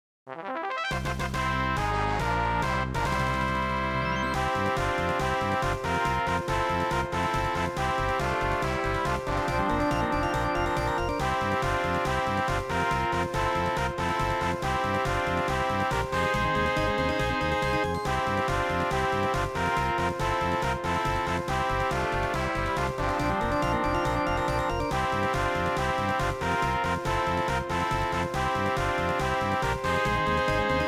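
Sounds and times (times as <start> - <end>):
victory fanfare: 0.3 - 30.8.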